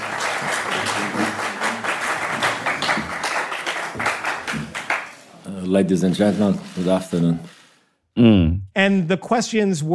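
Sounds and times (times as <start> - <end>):
journalists applauding at press conference: 0.0 - 5.3
speech: 0.4 - 1.3, 5.7 - 7.6, 8.2 - 9.9.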